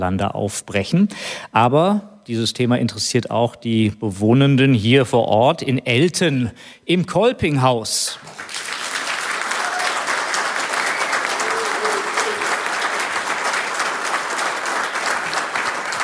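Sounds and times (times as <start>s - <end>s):
speech: 0.0s - 8.6s
large audience applause in Emmerich: 8.1s - 16.0s.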